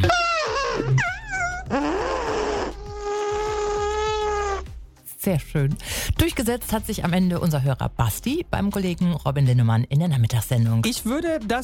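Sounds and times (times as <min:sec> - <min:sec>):
person imitating an elephant's trumpet with their mouth: 0:00.0 - 0:04.7
speech: 0:05.3 - 0:11.6.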